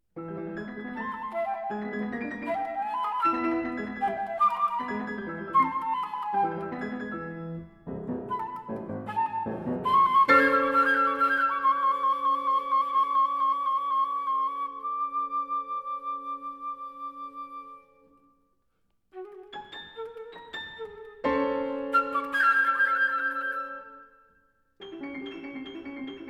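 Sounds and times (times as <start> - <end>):
piano: 0.0 - 18.4, 19.1 - 26.2
flute: 0.2 - 18.4, 19.1 - 24.4.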